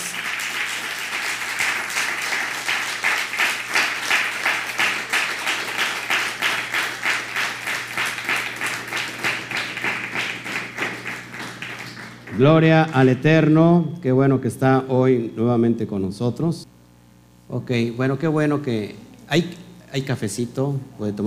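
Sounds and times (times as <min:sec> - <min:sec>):
audience applause: 0:00.0 - 0:13.2
speech: 0:12.4 - 0:16.7, 0:17.5 - 0:21.2.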